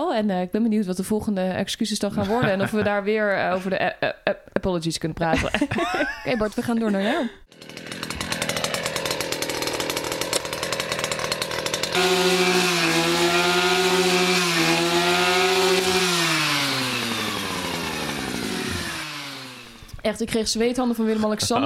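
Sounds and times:
speech: 0.2 - 7.7, 12.0 - 12.6, 20.1 - 21.6
laughter: 2.1 - 3.8, 5.3 - 7.4
small engine mower running: 7.4 - 20.0.

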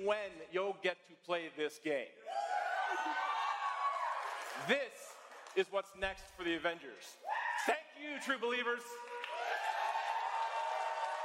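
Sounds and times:
speech: 0.0 - 3.3, 4.6 - 9.2
crowd cheering: 2.3 - 5.5, 8.9 - 11.2.

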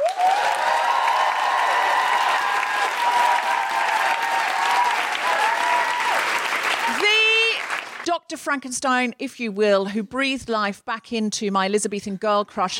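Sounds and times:
audience applause: 0.0 - 8.0
speech: 8.3 - 12.7.

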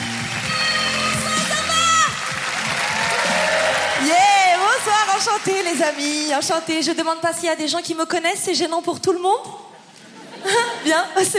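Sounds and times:
comedy show audience applause as a comedian walks on stage: 0.0 - 7.0
speech: 5.7 - 9.6, 10.4 - 11.3.

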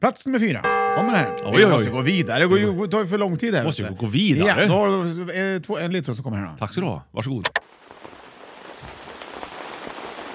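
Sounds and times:
speech: 0.0 - 7.8
heavy downpour of rain: 7.6 - 10.3.

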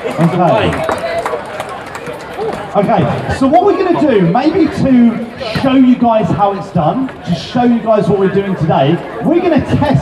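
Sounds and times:
audience applause: 0.0 - 2.8
speech: 0.1 - 1.0, 2.8 - 10.0.

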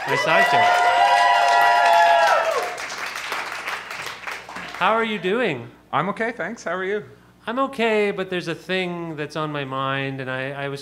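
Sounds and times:
speech: 0.0 - 0.9, 4.8 - 10.8
cheering and whooping voices: 0.0 - 2.9
audience clapping: 0.0 - 5.2.

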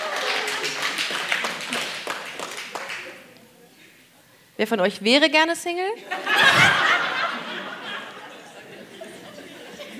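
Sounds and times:
crowd clapping once each: 0.0 - 3.4
speech: 4.6 - 6.8
laughter: 6.0 - 9.9.

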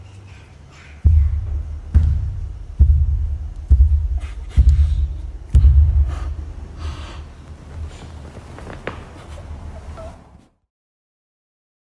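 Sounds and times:
heavy footsteps in recorded audio: 1.1 - 9.6.

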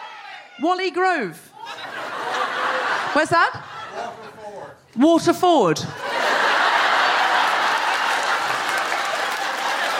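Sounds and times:
speech: 0.6 - 1.5, 3.1 - 6.1
laughter: 1.6 - 4.3, 5.9 - 9.9
applause: 7.0 - 9.9.

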